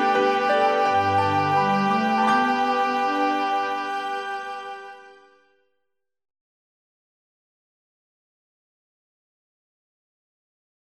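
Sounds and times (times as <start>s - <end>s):
easy listening and classical music: 0.0s - 5.6s.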